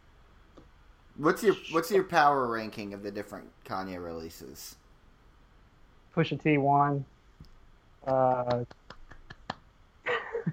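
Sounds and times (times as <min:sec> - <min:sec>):
speech: 0:01.2 - 0:04.8, 0:06.2 - 0:07.1, 0:08.0 - 0:08.8
sparse clapping: 0:08.0 - 0:09.7.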